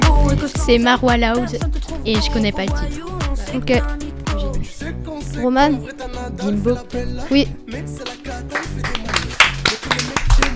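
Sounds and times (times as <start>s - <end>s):
speech: 0.3s - 9.0s
person clapping for themselves: 8.0s - 10.5s.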